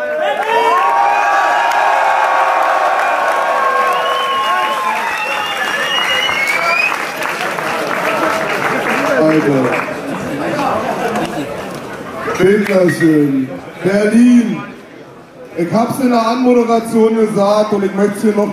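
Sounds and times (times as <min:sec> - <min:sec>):
audience whoops and shouts: 0:00.0 - 0:07.0
audience applauding after a German written a cappella rap battle: 0:00.0 - 0:11.5
speech: 0:09.4 - 0:09.8, 0:12.4 - 0:14.6, 0:15.6 - 0:18.5.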